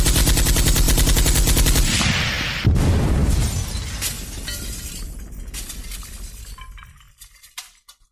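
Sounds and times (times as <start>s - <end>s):
machine gun fire: 0.0s - 3.3s
grenade explosion: 1.8s - 6.6s
glass shattering: 3.3s - 8.0s.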